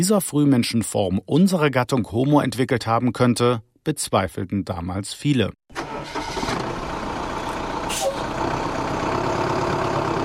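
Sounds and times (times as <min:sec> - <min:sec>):
speech: 0:00.0 - 0:06.2
bus engine rumbling: 0:05.8 - 0:10.2
bus air brakes hissing: 0:07.8 - 0:08.3.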